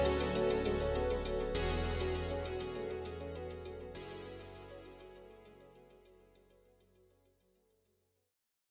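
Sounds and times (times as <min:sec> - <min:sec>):
80s-style excitement-building theme music: 0:00.0 - 0:05.8.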